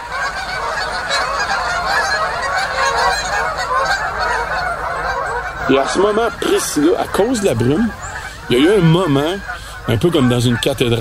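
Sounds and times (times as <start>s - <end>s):
flock of Canada geese honking and taking off: 0.0s - 10.9s
speech: 5.7s - 10.9s.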